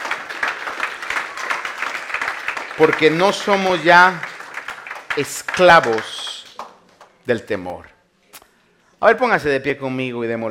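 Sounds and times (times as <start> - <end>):
church congregation applauding in thanks during a worship service: 0.0 - 7.3
speech: 2.8 - 4.3, 5.2 - 6.2, 7.2 - 7.9, 9.0 - 10.5.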